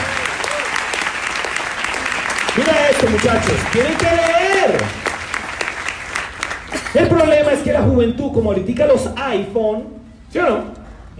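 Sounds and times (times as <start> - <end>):
faint whoops and cheers: 0.0 - 0.9
steady dense audience applause: 0.0 - 7.3
speech: 3.0 - 5.2, 6.9 - 11.1.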